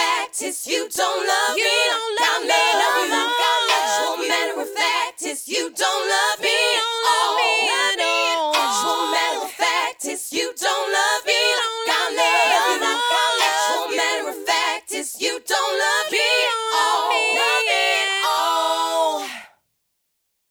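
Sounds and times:
female a cappella vocal: 0.0s - 19.6s.

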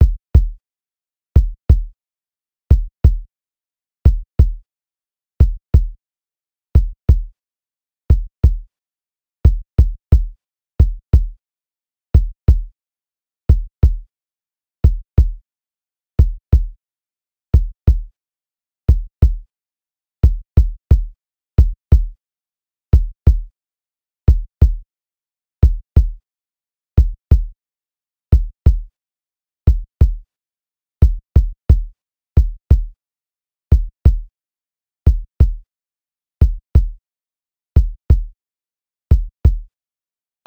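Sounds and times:
kick drum: 0.0s - 0.6s, 1.4s - 1.9s, 2.7s - 3.3s, 4.1s - 4.6s, 5.4s - 6.0s, 6.8s - 7.3s, 8.1s - 8.7s, 9.5s - 11.4s, 12.2s - 12.7s, 13.5s - 14.0s, 14.8s - 15.4s, 16.2s - 16.8s, 17.6s - 18.1s, 18.9s - 19.4s, 20.2s - 22.2s, 23.0s - 23.5s, 24.3s - 24.8s, 25.6s - 26.2s, 27.0s - 27.5s, 28.3s - 28.9s, 29.7s - 30.2s, 31.0s - 32.9s, 33.7s - 34.3s, 35.1s - 35.6s, 36.4s - 37.0s, 37.8s - 38.3s, 39.1s - 39.7s.

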